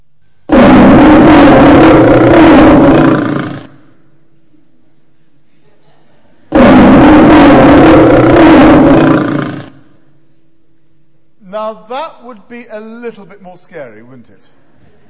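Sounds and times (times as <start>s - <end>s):
lion roaring: 0.5s - 3.9s, 6.5s - 10.0s
speech: 11.9s - 14.6s.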